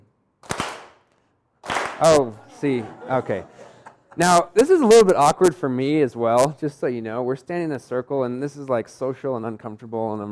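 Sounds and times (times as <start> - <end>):
group clapping in unison: 0.4 - 1.0, 1.6 - 2.4, 3.8 - 4.2
speech: 2.0 - 3.6, 4.2 - 10.3
laughter: 2.2 - 4.4.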